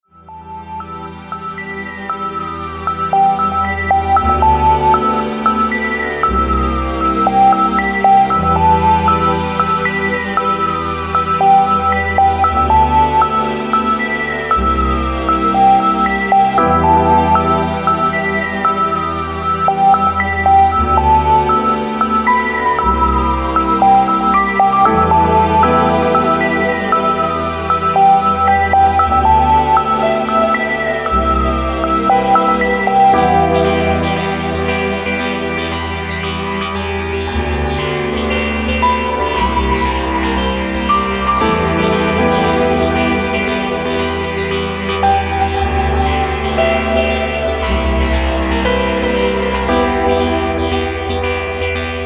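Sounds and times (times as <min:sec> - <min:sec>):
ringtone: 0:00.1 - 0:51.2.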